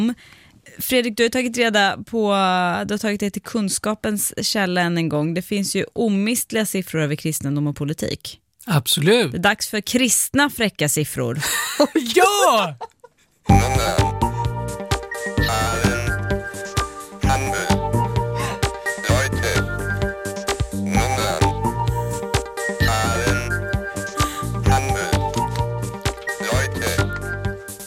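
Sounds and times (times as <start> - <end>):
speech: 0.0 - 14.2
new podcast segment jingle: 13.5 - 27.6.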